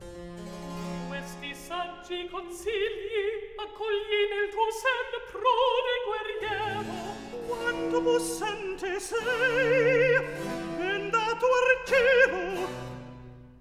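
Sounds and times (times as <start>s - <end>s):
opera recitative: 1.0s - 13.5s.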